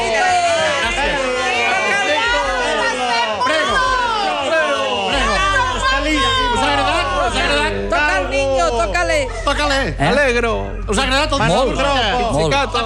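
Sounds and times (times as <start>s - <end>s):
dense crowd chatter in a packed square: 0.0s - 12.8s
high-pitched shouts: 0.1s - 7.8s
speech: 9.2s - 12.8s.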